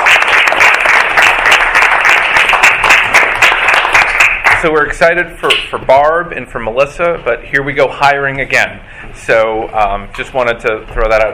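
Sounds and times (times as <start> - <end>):
audience applause: 0.0 - 4.7
speech: 4.6 - 11.3.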